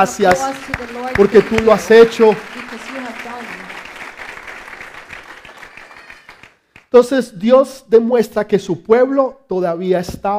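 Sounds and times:
speech: 0.0 - 3.6, 6.9 - 10.3
audience applause: 0.0 - 6.6.

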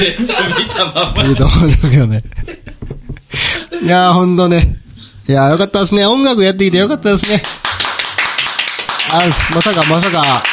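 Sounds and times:
speech: 0.0 - 2.6, 3.8 - 7.6, 9.1 - 10.5
laughter: 0.0 - 3.3
audience applause at live show: 7.4 - 10.5.

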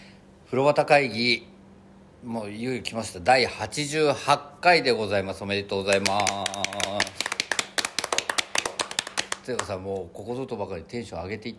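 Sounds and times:
speech: 0.5 - 1.5, 2.2 - 7.3, 9.5 - 11.5
hand clapping: 5.9 - 10.0.

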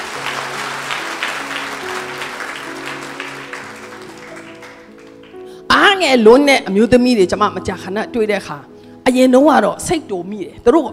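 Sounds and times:
church congregation clapping in praise: 0.0 - 5.5
speech: 5.9 - 10.9.

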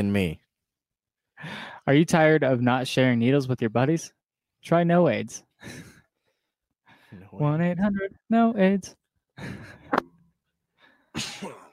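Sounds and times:
speech: 0.0 - 0.4, 1.4 - 5.9, 7.1 - 10.1, 11.2 - 11.6
person coughing: 11.2 - 11.7.

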